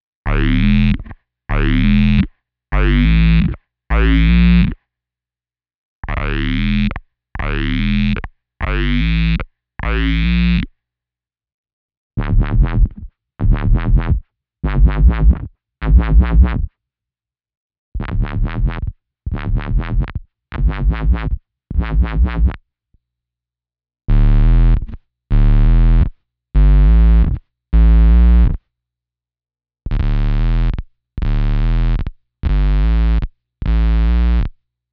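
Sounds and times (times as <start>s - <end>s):
bass guitar through BOSS OC-2 octave pedal, normal and squared: 0.3s - 4.8s, 6.0s - 10.7s, 12.2s - 16.7s, 18.0s - 22.6s, 24.1s - 28.6s, 29.9s - 34.6s.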